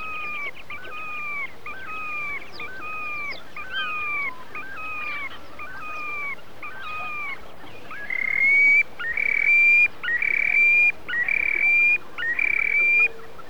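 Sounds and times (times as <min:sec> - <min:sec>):
Terek sandpiper whistling: 0:08.1 - 0:13.1.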